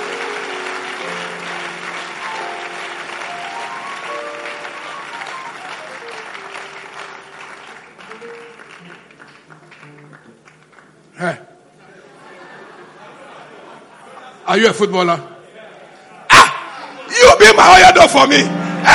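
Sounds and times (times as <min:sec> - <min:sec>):
audience clapping: 0:00.0 - 0:11.3
laughter: 0:11.8 - 0:14.5
speech: 0:14.5 - 0:15.3, 0:17.4 - 0:18.9.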